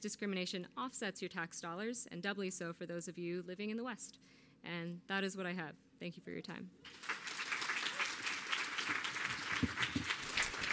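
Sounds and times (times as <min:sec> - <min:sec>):
speech: 0:00.0 - 0:07.2
audience applause: 0:06.9 - 0:10.7.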